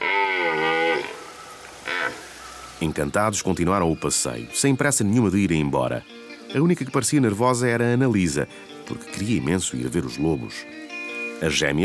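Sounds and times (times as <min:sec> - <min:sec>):
deer stag calling to a female: 0:00.0 - 0:02.9
speech: 0:02.8 - 0:11.8.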